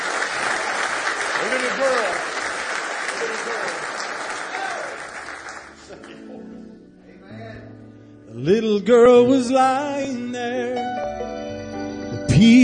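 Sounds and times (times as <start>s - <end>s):
audience clapping: 0.0s - 6.4s
speech: 1.4s - 2.3s, 3.2s - 3.9s, 8.4s - 11.2s.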